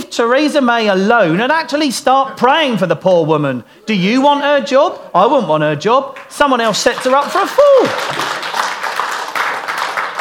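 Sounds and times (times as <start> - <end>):
speech: 0.2 - 8.7
audience clapping: 6.1 - 10.1.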